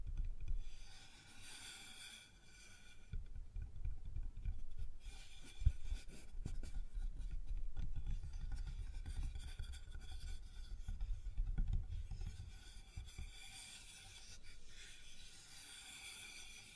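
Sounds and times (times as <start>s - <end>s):
rubbing and scraping on a wooden surface: 0.0s - 16.7s.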